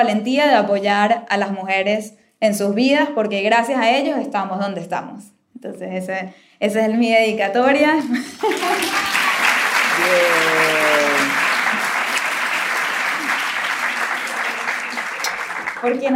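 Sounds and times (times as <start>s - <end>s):
speech: 0.0s - 9.3s, 10.0s - 11.4s, 15.8s - 16.1s
laughter: 8.1s - 15.7s
audience applause: 8.4s - 16.1s.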